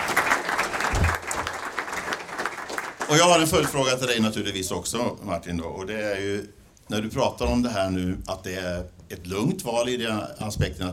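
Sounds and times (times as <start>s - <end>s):
audience applause for a speaker at a Swedish political debate: 0.0s - 3.8s
speech: 3.1s - 10.9s.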